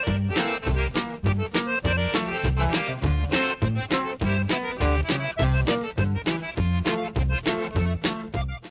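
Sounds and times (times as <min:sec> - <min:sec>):
accordion: 0:00.0 - 0:08.6.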